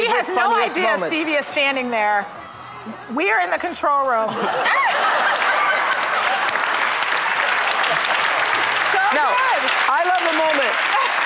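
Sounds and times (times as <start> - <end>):
speech: 0.2 - 5.5, 9.1 - 10.9
laughter: 4.2 - 8.6
talk-show studio audience applauding: 5.2 - 11.2.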